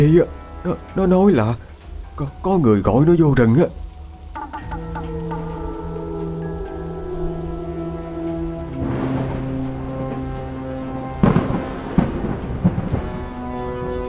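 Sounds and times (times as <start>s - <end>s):
speech: 0.0s - 3.8s
thunder and lightning overhead: 4.4s - 14.0s.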